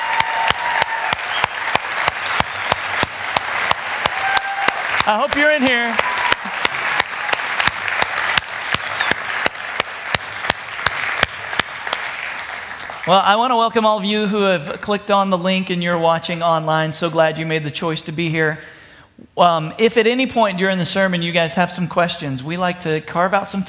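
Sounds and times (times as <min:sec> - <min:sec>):
loud sustained applause: 0:00.0 - 0:13.3
speech: 0:05.1 - 0:06.1, 0:13.0 - 0:18.8, 0:19.4 - 0:23.6.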